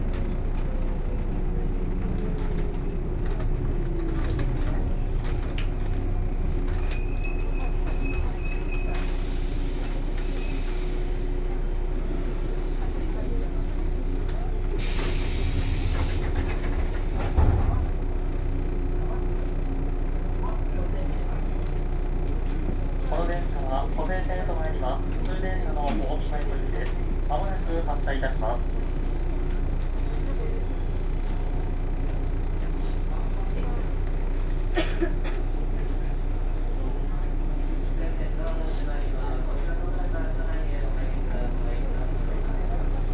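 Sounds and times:
Series 117 local train on the Kosei Line motor and wheels rumble: 0.0 - 43.1
brief hiss and thump: 14.8 - 17.8.

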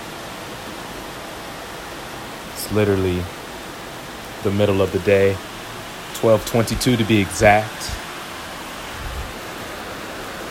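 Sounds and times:
rain: 0.0 - 10.5
speech: 2.7 - 3.4, 4.4 - 5.5, 6.2 - 8.0.

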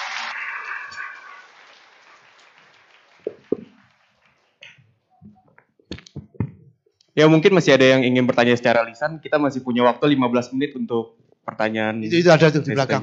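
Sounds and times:
audience applause: 0.0 - 4.8
speech: 7.2 - 13.0.

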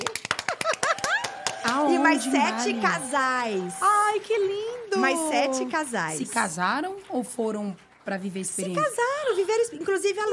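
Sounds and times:
few people clapping rapidly: 0.0 - 10.3
excited voices and exclamations: 0.8 - 6.3
speech: 2.0 - 10.3.

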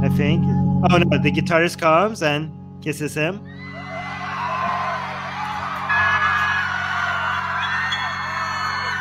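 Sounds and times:
speech: 0.1 - 3.8
large concert crowd cheering: 3.5 - 8.9
whoops and yells: 3.5 - 8.9.

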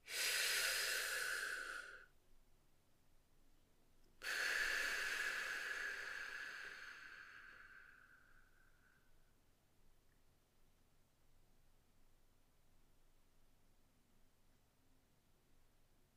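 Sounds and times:
deep forceful breathing: 0.1 - 2.1, 4.2 - 8.9.

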